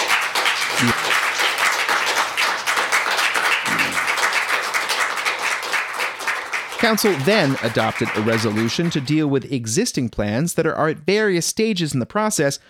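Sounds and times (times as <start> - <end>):
council chamber crowd applause: 0.0 - 9.3
brief voices: 0.8 - 1.1
speech: 0.8 - 1.1, 6.8 - 12.6.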